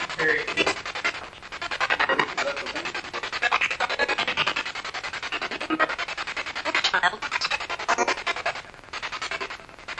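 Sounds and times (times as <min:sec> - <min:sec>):
spirit box radio sweep: 0:00.0 - 0:09.9.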